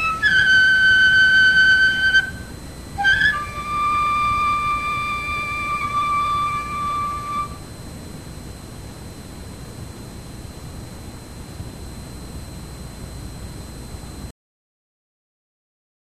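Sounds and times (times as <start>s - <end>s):
fue flute for mikoshi furyu performance: 0.0s - 7.7s.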